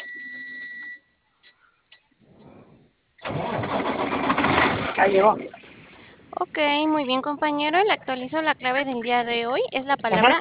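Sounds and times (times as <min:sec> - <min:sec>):
vehicle engine cranking, starting and running: 0:02.2 - 0:06.4
speech: 0:05.0 - 0:05.6, 0:06.4 - 0:10.3.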